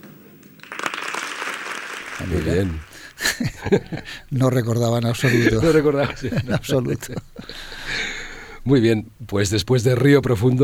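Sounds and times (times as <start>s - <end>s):
audience applause: 0.6s - 8.6s
laughter: 2.0s - 9.0s
speech: 2.2s - 7.7s, 8.6s - 10.6s.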